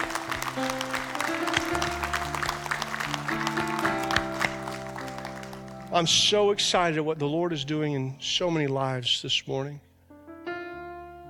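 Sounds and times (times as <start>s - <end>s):
audience clapping in praise: 0.0s - 6.9s
speech: 6.0s - 9.9s.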